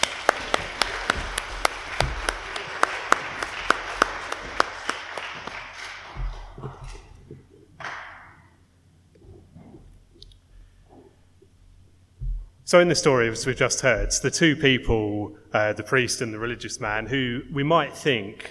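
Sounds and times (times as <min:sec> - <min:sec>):
group clapping: 0:00.0 - 0:06.8, 0:07.8 - 0:08.2
room murmur: 0:00.0 - 0:17.6
speech: 0:12.7 - 0:18.4.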